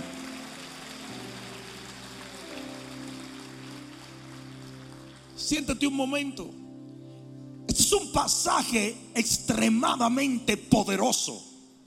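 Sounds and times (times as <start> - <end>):
audience applause: 0.0 - 5.9
speech: 5.4 - 6.6, 7.8 - 11.5.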